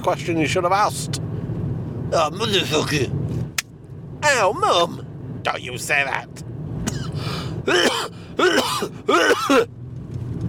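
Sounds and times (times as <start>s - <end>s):
speech: 0.0s - 1.3s, 2.1s - 3.4s, 4.2s - 6.5s, 7.2s - 9.8s
low constant rumble: 0.0s - 10.4s
raspy coughing from cigar smoke: 6.9s - 9.7s.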